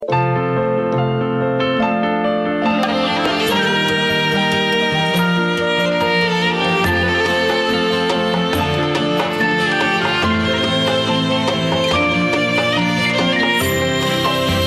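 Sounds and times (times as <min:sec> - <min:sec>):
melody: 0:00.0 - 0:14.6.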